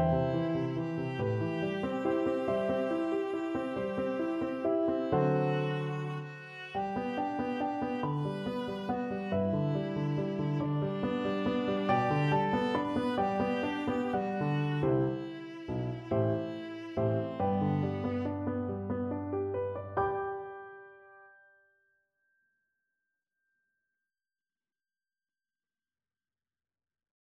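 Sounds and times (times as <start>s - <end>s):
violin in a violin and viola duet: 0.0s - 19.3s.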